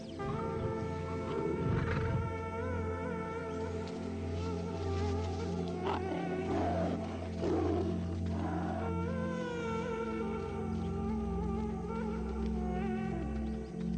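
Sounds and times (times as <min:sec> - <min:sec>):
lion roaring: 0:00.2 - 0:02.6, 0:05.8 - 0:09.4
wild animal and insect-like buzzing: 0:00.2 - 0:13.9.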